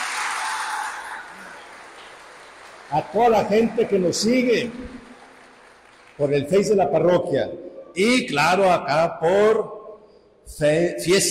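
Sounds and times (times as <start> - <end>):
applause: 0.0 - 6.8
speech: 2.9 - 5.1, 6.2 - 9.7, 10.5 - 11.3.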